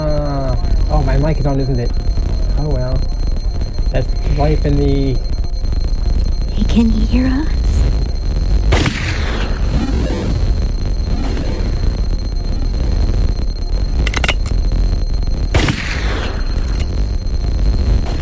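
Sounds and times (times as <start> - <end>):
noisy game background: 0.0 - 18.2
speech: 1.0 - 3.2, 3.9 - 5.3, 6.6 - 7.6
video game gunshots: 8.7 - 10.4, 15.5 - 16.7.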